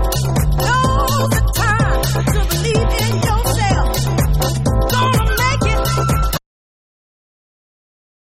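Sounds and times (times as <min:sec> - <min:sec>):
funky Rhodes electric piano mix: 0:00.0 - 0:06.4.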